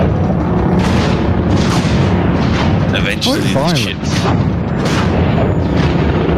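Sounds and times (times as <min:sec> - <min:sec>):
sci-fi lightning storm in hyperspace cloud: 0:00.0 - 0:06.3
speech: 0:03.2 - 0:04.6.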